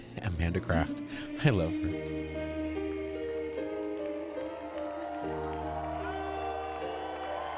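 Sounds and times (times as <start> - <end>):
speech: 0.4 - 2.4
live audience cheering and clapping: 3.2 - 7.5.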